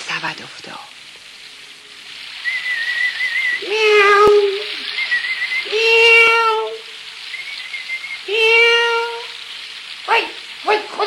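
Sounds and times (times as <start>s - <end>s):
constant breathy hiss: 0.0s - 11.0s
speech: 0.2s - 1.0s
person whistling a tune while walking: 2.4s - 3.6s, 4.9s - 5.7s, 7.3s - 8.2s.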